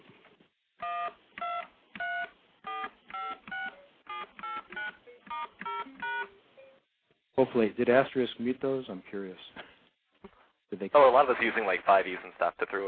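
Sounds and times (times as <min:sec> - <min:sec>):
standard touch-tone DTMF dialing beeps: 0:00.8 - 0:06.8
speech: 0:07.4 - 0:09.6, 0:10.7 - 0:12.8.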